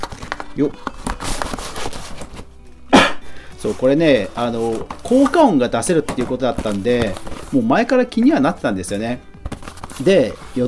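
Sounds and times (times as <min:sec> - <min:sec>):
cardboard product box being opened: 0:00.0 - 0:02.5, 0:03.6 - 0:07.8, 0:09.4 - 0:10.6
speech: 0:00.6 - 0:01.0, 0:03.6 - 0:09.3, 0:10.0 - 0:10.6.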